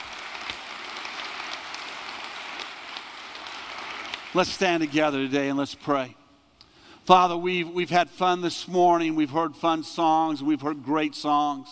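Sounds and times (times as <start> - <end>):
audience applause: 0.0 - 5.0
speech: 4.4 - 6.2, 7.1 - 11.7.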